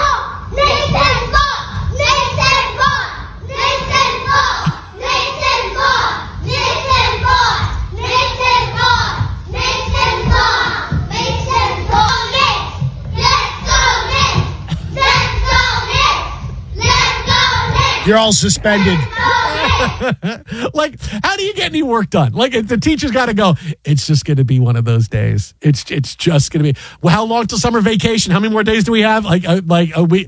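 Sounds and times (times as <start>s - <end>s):
children cheering and chanting in classroom: 0.0s - 20.2s
laughter: 14.7s - 15.1s, 18.1s - 21.1s
speech: 18.1s - 19.2s, 19.8s - 30.2s.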